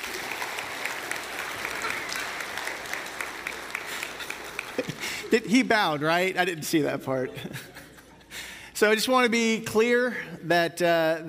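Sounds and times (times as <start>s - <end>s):
audience applause: 0.0s - 6.3s
laughter: 1.4s - 6.1s, 6.8s - 8.4s
speech: 4.8s - 7.8s, 8.8s - 11.2s.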